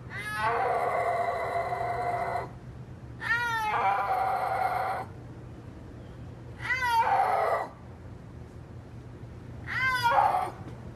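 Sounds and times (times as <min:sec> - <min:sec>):
snow leopard mew-like yowl: 0:00.1 - 0:02.6, 0:03.2 - 0:05.1, 0:06.6 - 0:07.8, 0:09.7 - 0:10.7.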